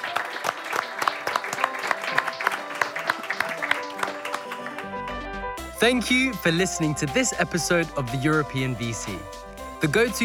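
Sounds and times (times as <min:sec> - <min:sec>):
audience applause: 0:00.0 - 0:05.3
speech: 0:05.8 - 0:10.2.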